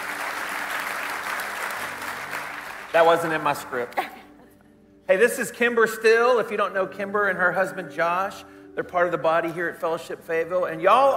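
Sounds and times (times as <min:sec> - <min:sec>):
church congregation applauding the band after a song: 0:00.0 - 0:04.0
speech: 0:02.9 - 0:04.1, 0:05.1 - 0:11.1.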